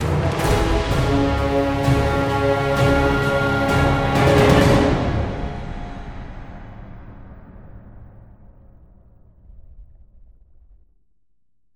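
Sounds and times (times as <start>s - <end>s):
death musical sting: 0.1s - 8.8s.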